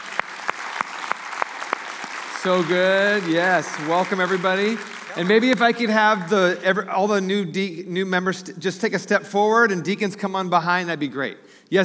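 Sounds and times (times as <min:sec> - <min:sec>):
audience clapping: 0:00.0 - 0:06.4
speech: 0:02.4 - 0:11.8.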